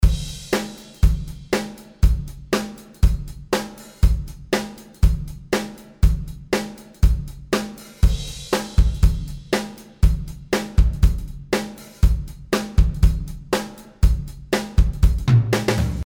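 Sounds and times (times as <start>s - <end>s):
drums: 0.0s - 16.0s.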